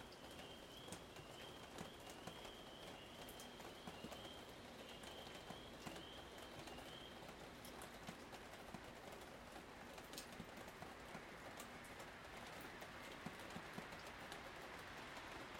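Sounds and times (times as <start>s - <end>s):
raindrops dripping from the roof: 0.0s - 15.5s.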